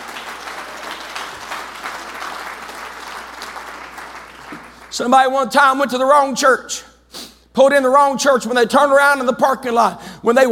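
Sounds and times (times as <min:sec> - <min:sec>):
audience clapping: 0:00.0 - 0:05.0
speech: 0:04.9 - 0:06.9, 0:07.6 - 0:10.5.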